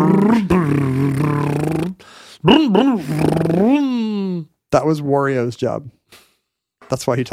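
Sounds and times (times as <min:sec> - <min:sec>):
man imitating a car motor: 0:00.0 - 0:04.5
speech: 0:00.1 - 0:00.6, 0:02.4 - 0:03.9, 0:04.7 - 0:06.0, 0:06.9 - 0:07.3.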